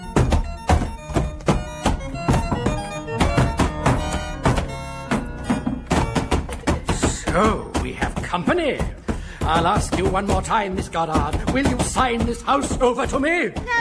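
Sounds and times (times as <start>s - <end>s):
battering against a door: 0.0s - 13.7s
speech: 7.4s - 7.6s, 8.3s - 13.7s.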